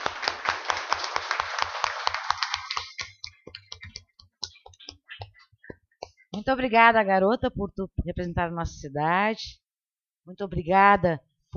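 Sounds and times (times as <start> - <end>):
round of applause: 0.0 - 3.8
speech: 6.4 - 9.6, 10.3 - 11.5.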